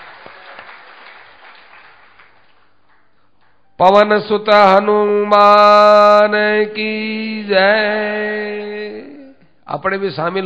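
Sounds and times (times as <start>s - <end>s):
crowd clapping: 0.0s - 3.6s
speech: 3.8s - 9.1s, 9.7s - 10.4s.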